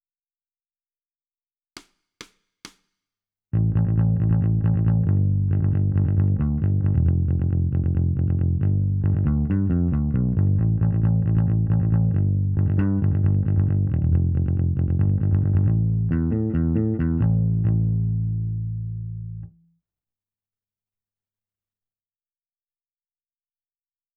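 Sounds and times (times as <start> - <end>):
bass: 3.6 - 19.7.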